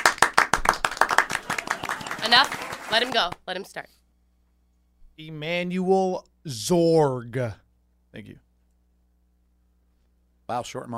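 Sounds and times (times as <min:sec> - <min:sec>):
clapping: 0:00.0 - 0:03.4
speech: 0:02.3 - 0:04.0, 0:05.2 - 0:08.4, 0:10.5 - 0:10.9.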